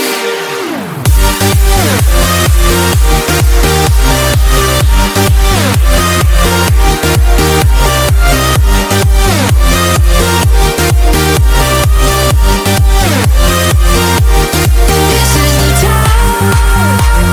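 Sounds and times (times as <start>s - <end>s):
beat drop: 0.1s - 17.3s.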